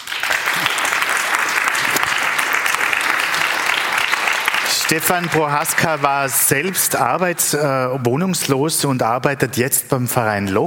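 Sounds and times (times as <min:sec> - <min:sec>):
audience applause: 0:00.0 - 0:07.6
speech: 0:04.9 - 0:10.6.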